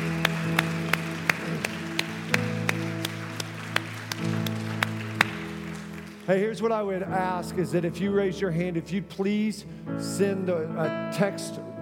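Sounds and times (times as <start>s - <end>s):
audience applause: 0.0s - 6.4s
sustained keyboard or organ chords: 0.0s - 11.8s
speech: 6.3s - 11.7s.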